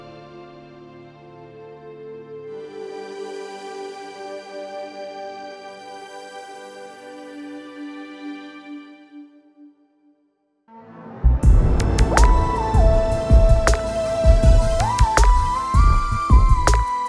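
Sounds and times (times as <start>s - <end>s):
synthetic ambience: 11.3s - 17.0s.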